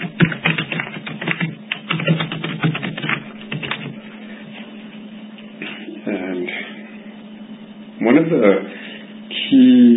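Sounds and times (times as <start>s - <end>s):
typing a title on a computer keyboard: 0.0s - 4.0s
speech: 8.0s - 8.8s.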